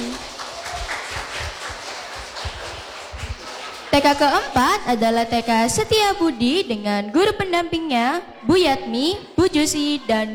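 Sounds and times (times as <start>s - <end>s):
crowd of children clapping: 0.0s - 5.7s
speech: 4.0s - 10.3s.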